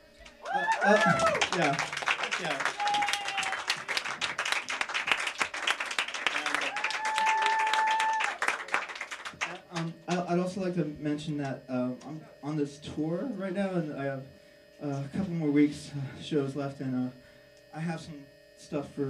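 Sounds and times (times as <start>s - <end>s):
audience applause: 0.2s - 10.2s
speech: 0.8s - 2.8s, 10.6s - 17.2s, 17.8s - 19.0s.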